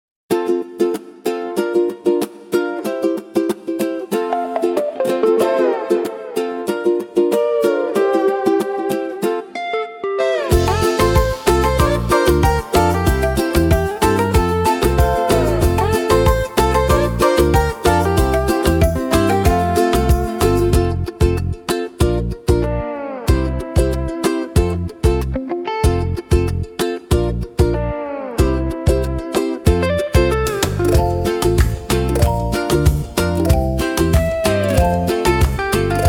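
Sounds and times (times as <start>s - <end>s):
bright light tropical ukulele: 0.3s - 36.0s.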